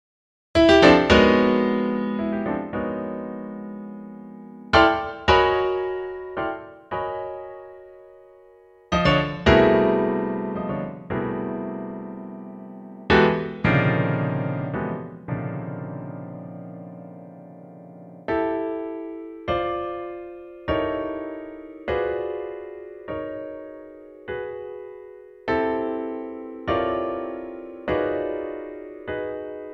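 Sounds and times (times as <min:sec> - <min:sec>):
piano: 0:00.5 - 0:29.7.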